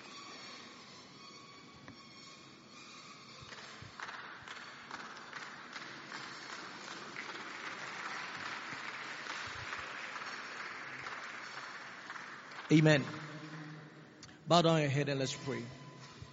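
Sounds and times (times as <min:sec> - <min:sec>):
audience clapping: 0:03.5 - 0:14.0
speech: 0:12.7 - 0:13.2, 0:14.5 - 0:15.8.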